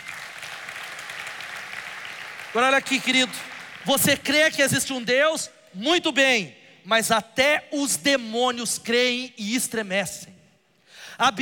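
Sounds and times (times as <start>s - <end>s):
audience applauding: 0.0s - 4.4s
speech: 2.5s - 10.3s, 11.2s - 11.3s.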